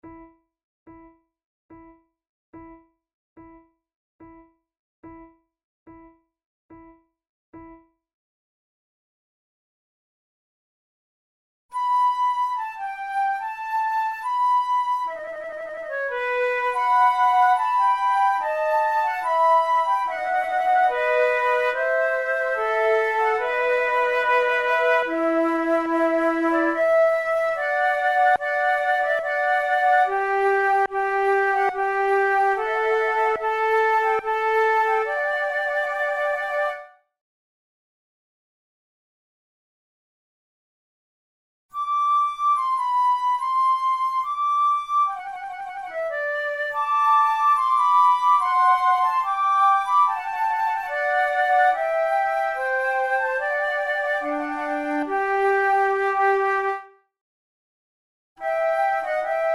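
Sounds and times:
tender trio sonata with flute: 11.7s - 36.9s, 41.8s - 57.0s, 58.4s - 59.5s.

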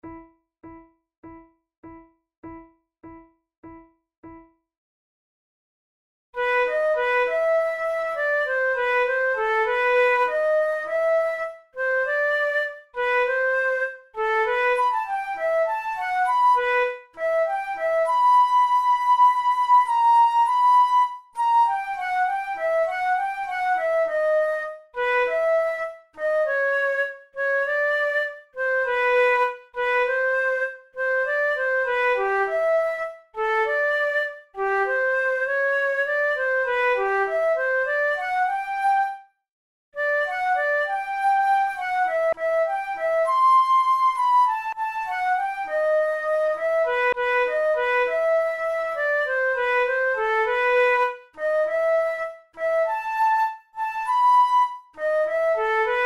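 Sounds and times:
allegro classical piece: 6.4s - 39.1s, 40.0s - 56.0s.

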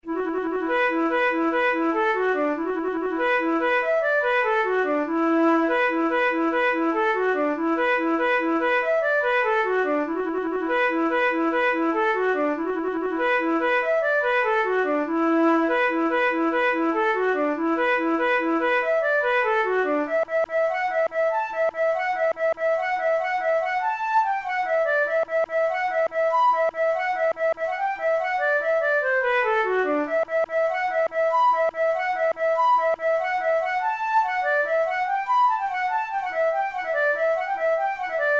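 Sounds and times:
flute playing a fancy jig: 0.0s - 38.3s.

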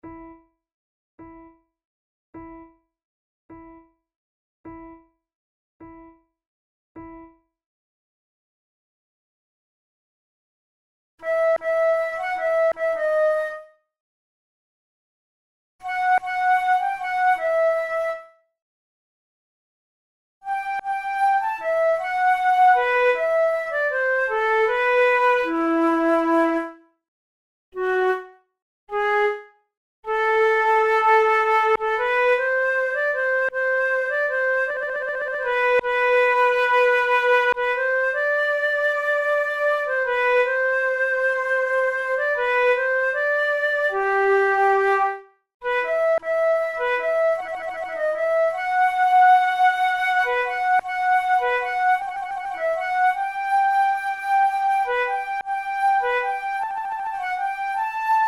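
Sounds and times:
two flutes playing: 11.2s - 13.7s, 15.8s - 18.3s, 20.5s - 26.8s, 30.1s - 58.2s.

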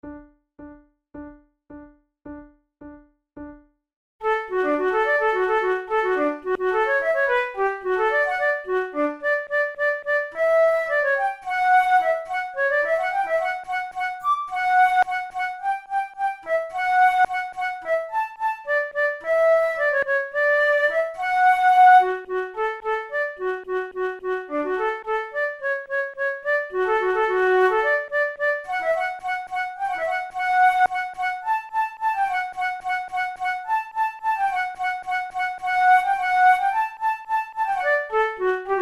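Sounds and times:
flute duet: 4.2s - 38.8s.

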